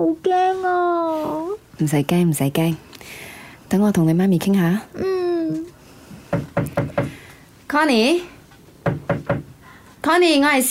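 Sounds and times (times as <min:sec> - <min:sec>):
speech: 0:00.0 - 0:00.7, 0:01.8 - 0:05.6, 0:07.7 - 0:08.3, 0:10.1 - 0:10.6
knocking on a locked bedroom door: 0:06.3 - 0:07.2, 0:08.8 - 0:09.5.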